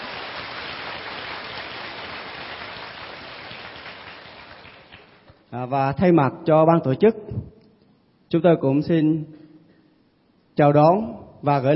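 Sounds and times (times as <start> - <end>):
crowd applauding: 0.0 - 5.3
speech: 5.5 - 7.5, 8.3 - 9.4, 10.6 - 11.7.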